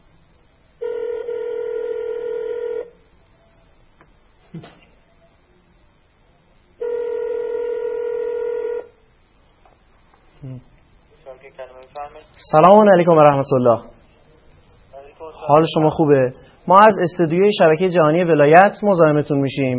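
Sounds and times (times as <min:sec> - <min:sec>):
telephone ringback tones of a call from a television studio: 0:00.8 - 0:02.9, 0:06.8 - 0:08.9
speech: 0:11.5 - 0:13.9, 0:15.5 - 0:19.7.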